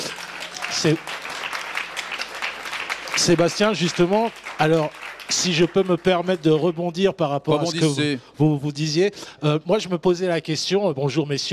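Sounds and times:
audience applause: 0:00.0 - 0:07.1
speech: 0:00.8 - 0:01.2, 0:03.2 - 0:11.5.

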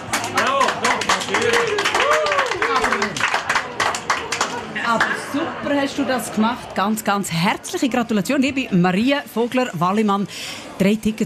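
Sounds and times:
applause sound effect: 0:00.0 - 0:05.2
speech: 0:05.8 - 0:11.2.

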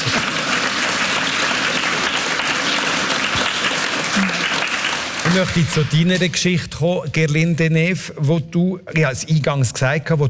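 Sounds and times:
audience applause: 0:00.0 - 0:06.0
speech: 0:05.3 - 0:10.2.

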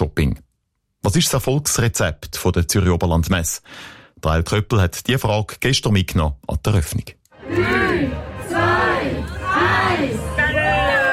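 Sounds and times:
speech: 0:00.2 - 0:00.4, 0:01.0 - 0:07.8
crowd cheering at opening countdown: 0:07.4 - 0:11.1.

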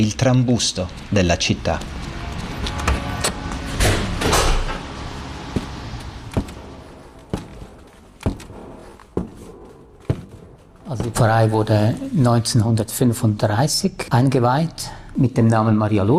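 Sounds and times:
speech: 0:00.0 - 0:02.0, 0:11.2 - 0:16.1
large entrance door of the Maria Lourdes church in Seebach scraping open: 0:02.2 - 0:07.2
evenly spaced sharp thuds: 0:05.5 - 0:11.6.

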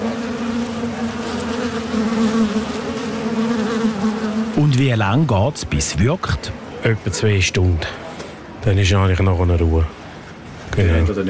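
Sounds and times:
wasps buzzing at nest entrance: 0:00.0 - 0:04.8
speech: 0:02.6 - 0:02.8, 0:04.6 - 0:08.0, 0:08.6 - 0:10.0, 0:10.8 - 0:11.2.

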